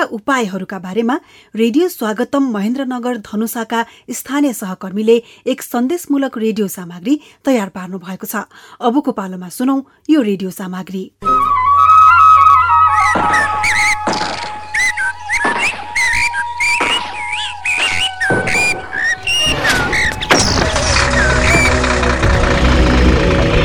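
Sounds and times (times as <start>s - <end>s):
speech: 0.1s - 11.6s
high whistling tones: 11.2s - 22.8s
vehicles hauling timber, firewood, sand and gravel from Chure forest: 12.9s - 23.6s.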